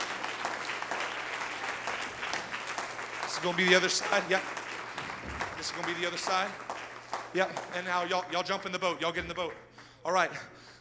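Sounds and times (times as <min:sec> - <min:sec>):
audience clapping: 0:00.0 - 0:10.8
speech: 0:03.4 - 0:04.6, 0:05.6 - 0:06.7, 0:07.3 - 0:10.6.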